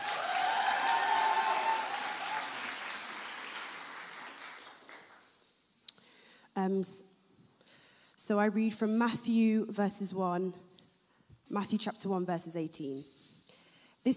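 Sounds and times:
audience applause: 0.0s - 5.2s
speech: 6.6s - 7.1s, 8.3s - 10.7s, 11.5s - 13.2s.

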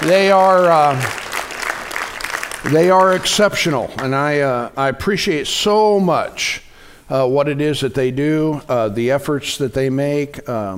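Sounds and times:
audience clapping: 0.0s - 4.3s
speech: 0.1s - 1.2s, 2.6s - 10.7s.

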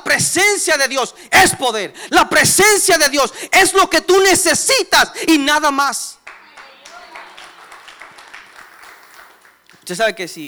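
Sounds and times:
speech: 0.2s - 6.2s, 9.9s - 10.4s
audience applause: 6.2s - 10.4s.

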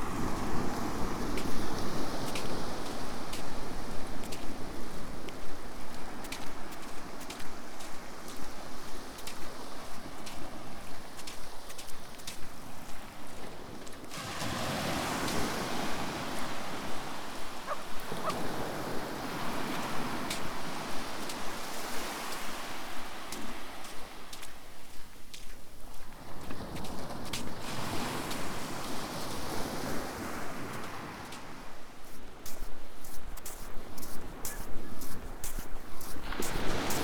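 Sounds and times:
sea waves washing onto a beach at low tide: 0.0s - 37.0s.

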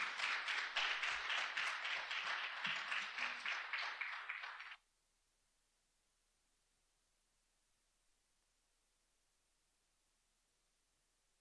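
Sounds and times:
crowd applauding: 0.0s - 4.8s.

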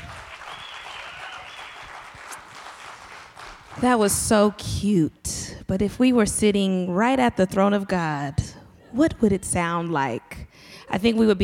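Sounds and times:
audience clapping: 0.0s - 4.3s
speech: 3.8s - 10.3s, 10.9s - 11.4s.

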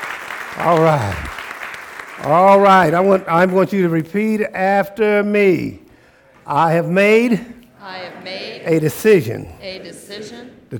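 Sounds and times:
audience hand clapping: 0.0s - 4.2s
speech: 0.6s - 1.4s, 2.2s - 5.8s, 6.4s - 10.7s.

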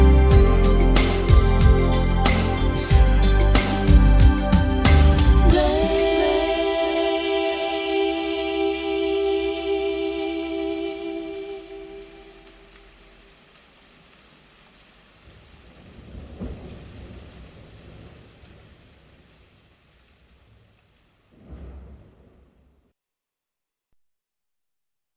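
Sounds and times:
instrumental radio remix: 0.0s - 9.5s.

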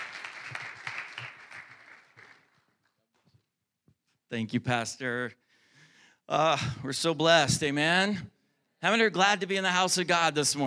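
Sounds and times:
church congregation applauding to welcome a preacher: 0.0s - 2.8s
speech: 4.3s - 5.4s, 6.3s - 10.6s.

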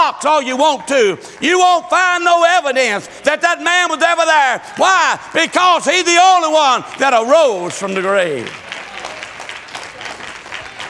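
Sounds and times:
speech: 0.1s - 8.7s
audience clapping hands: 0.5s - 2.2s, 6.8s - 10.8s.

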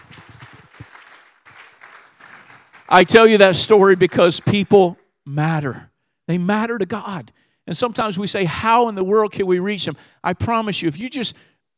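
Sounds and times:
crowd applauding: 0.0s - 4.9s
speech: 2.9s - 11.5s.

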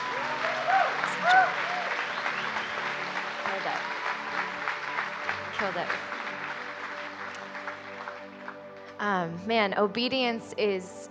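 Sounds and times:
voices cheering: 0.0s - 2.8s
audience applause for performers at a church intern night: 0.0s - 8.8s
speech: 5.7s - 6.1s, 9.2s - 11.1s.

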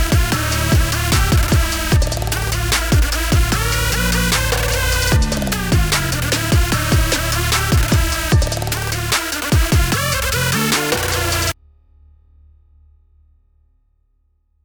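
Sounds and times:
trap beat: 0.0s - 11.6s.

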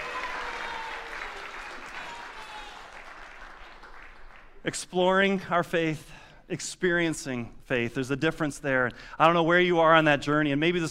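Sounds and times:
audience round of applause: 0.0s - 4.6s
speech: 4.6s - 10.9s.

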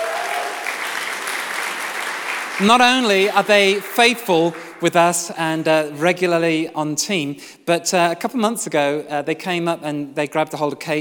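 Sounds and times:
church congregation applause during a morning service: 0.0s - 5.1s
speech: 2.6s - 10.9s.

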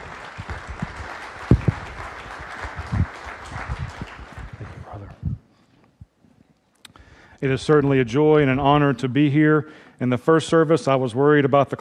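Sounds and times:
church congregation applauding a guest speaker: 0.0s - 5.2s
speech: 7.4s - 11.7s.

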